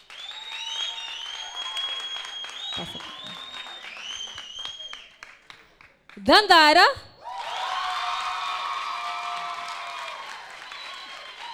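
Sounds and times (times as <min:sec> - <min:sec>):
group applauding at a formal lineup: 0:00.0 - 0:11.5
speech: 0:02.8 - 0:03.2, 0:06.2 - 0:07.1.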